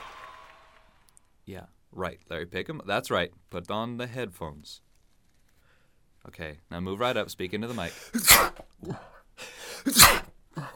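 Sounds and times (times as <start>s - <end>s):
speech: 1.5s - 4.9s, 6.2s - 10.2s
breathy inhales: 7.7s - 8.2s, 9.4s - 9.9s
sneeze: 8.1s - 8.7s, 9.8s - 10.4s.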